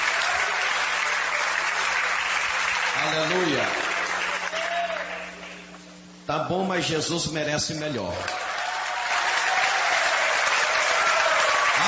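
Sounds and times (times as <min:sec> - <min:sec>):
audience applauding: 0:00.0 - 0:05.6, 0:08.2 - 0:11.8
speech: 0:03.0 - 0:03.8, 0:06.3 - 0:08.5.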